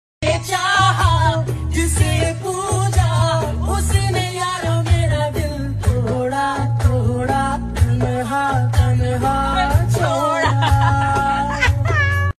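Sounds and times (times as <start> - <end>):
person singing: 0.2 - 12.3
laughter: 9.9 - 12.3.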